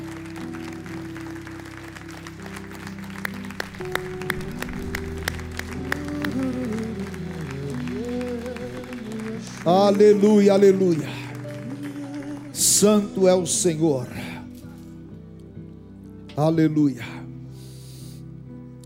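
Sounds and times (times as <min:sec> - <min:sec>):
audience applause: 0:00.0 - 0:13.8
speech: 0:09.6 - 0:11.2, 0:12.8 - 0:14.2, 0:16.4 - 0:17.1.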